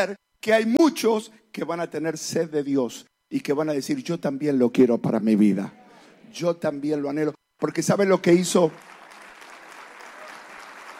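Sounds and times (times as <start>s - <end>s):
speech: 0.0s - 8.9s
audience applause: 8.7s - 10.9s.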